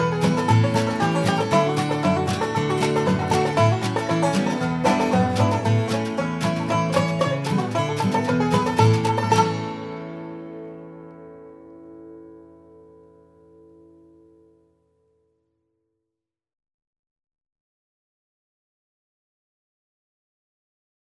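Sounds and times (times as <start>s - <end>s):
folk music: 0.0s - 14.2s.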